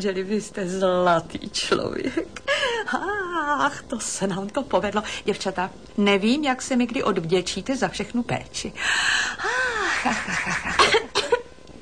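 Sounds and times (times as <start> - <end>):
speech: 0.0 - 11.0
laughter: 9.7 - 11.1
person coughing: 10.7 - 11.5.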